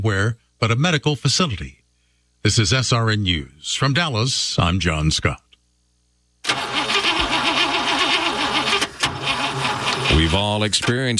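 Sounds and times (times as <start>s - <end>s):
speech: 0.0s - 1.8s, 2.4s - 5.4s, 10.1s - 11.1s
car engine cranking, failing to start: 6.5s - 11.0s.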